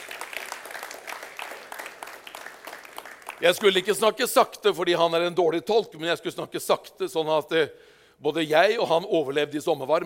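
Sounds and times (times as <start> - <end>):
audience applause: 0.0 - 3.5
speech: 3.4 - 10.0.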